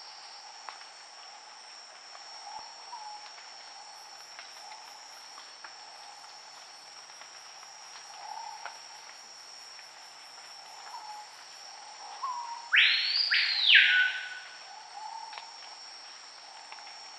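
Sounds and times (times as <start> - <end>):
Screaming piha Lipaugus vociferans whistled call: 12.2 - 15.2.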